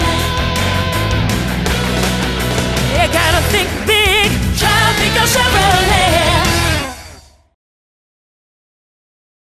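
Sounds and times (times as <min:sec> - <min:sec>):
tropical music: 0:00.0 - 0:07.4.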